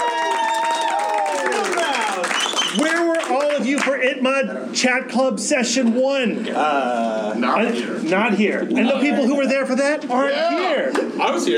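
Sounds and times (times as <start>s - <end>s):
big crowd cheering: 0.0s - 3.6s
speech: 3.8s - 11.5s.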